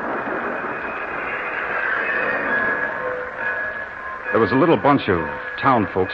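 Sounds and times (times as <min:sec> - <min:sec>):
train pulling into the station: 0:00.0 - 0:06.1
speech: 0:04.4 - 0:06.1.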